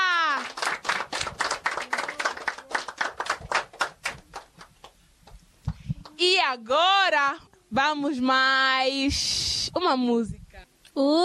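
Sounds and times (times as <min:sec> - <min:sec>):
audience clapping: 0:00.0 - 0:05.4
speech: 0:06.2 - 0:10.4, 0:11.0 - 0:11.2.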